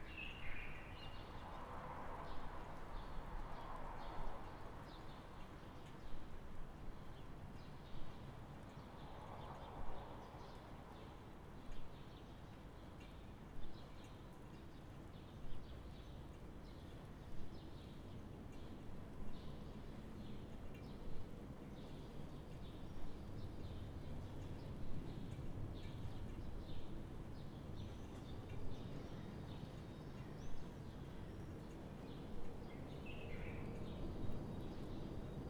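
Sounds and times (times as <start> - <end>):
light rain in a small town: 0.0 - 35.4.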